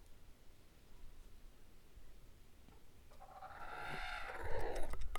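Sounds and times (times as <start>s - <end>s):
rooster crowing: 3.2s - 5.0s.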